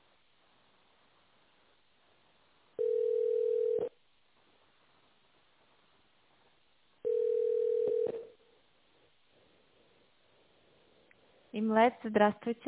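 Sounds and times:
phone line hiss: 2.8 - 3.9, 7.0 - 8.4
telephone ringback tone: 2.8 - 3.9, 7.0 - 8.3
speech: 11.6 - 12.6.

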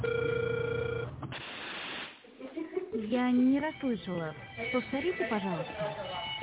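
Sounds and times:
ringback tone on a phone line while a call is placed: 0.0 - 1.1
speech: 3.0 - 6.3.

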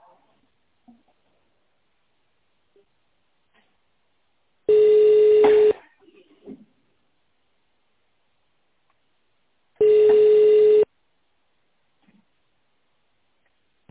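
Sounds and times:
telephone ringing tone: 4.7 - 5.8, 9.8 - 10.9.

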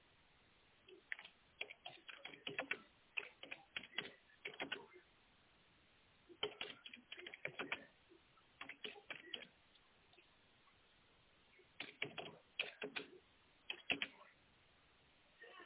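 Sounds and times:
fingers typing on a computer keyboard: 0.9 - 4.9, 6.4 - 7.9, 8.6 - 9.5, 11.8 - 14.2.

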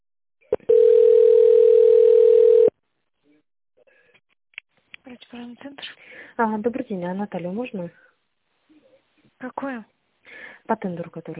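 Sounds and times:
steady telephone tone during transfer to an operator: 0.5 - 2.7
speech: 5.4 - 8.1, 9.4 - 9.9, 10.7 - 11.3.

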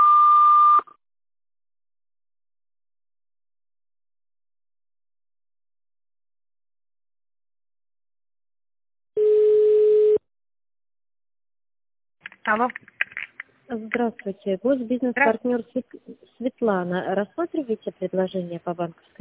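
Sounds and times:
short telephone beep after voicemail greeting: 9.2 - 10.2
speech: 12.5 - 13.0, 13.7 - 19.1.

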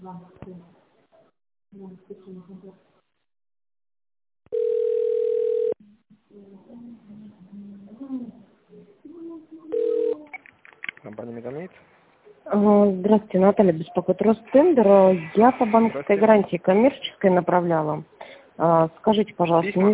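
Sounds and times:
speech: 0.0 - 0.8, 1.7 - 2.9, 11.0 - 11.9, 12.5 - 19.9
telephone ringback tone: 4.5 - 5.8, 9.7 - 10.2.

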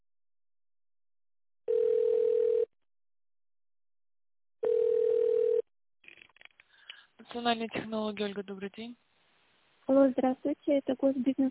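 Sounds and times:
telephone ringback tone: 1.7 - 2.7, 4.6 - 5.6
speech: 7.3 - 9.0, 9.9 - 11.4.

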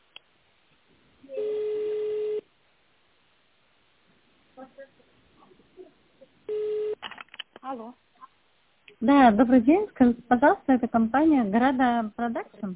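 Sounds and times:
telephone line beep: 1.3 - 2.4, 6.5 - 7.0
speech: 7.7 - 8.1, 9.0 - 12.7.

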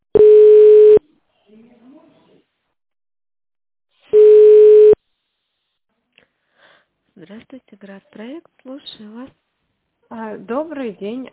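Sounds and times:
telephone ringback tone: 0.2 - 1.0, 4.2 - 5.0
speech: 7.2 - 9.4, 10.1 - 11.3.

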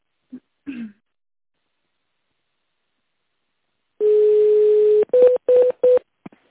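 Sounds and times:
telephone dial tone: 4.0 - 6.0
telephone keypad beeps punching in an extension number: 5.1 - 6.0.

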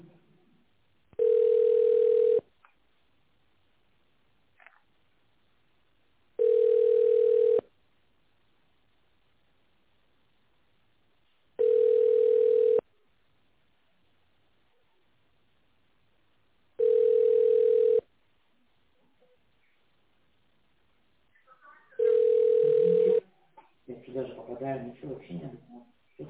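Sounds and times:
telephone ringback tone: 1.2 - 2.4, 6.4 - 7.6, 11.6 - 12.8, 16.8 - 18.0, 22.0 - 23.2
recorded voice speaking: 23.9 - 26.2.

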